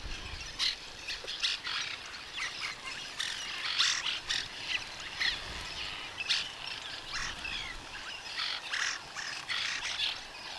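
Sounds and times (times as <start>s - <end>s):
dense chorus of several birds chirping and twittering: 0.0s - 10.5s.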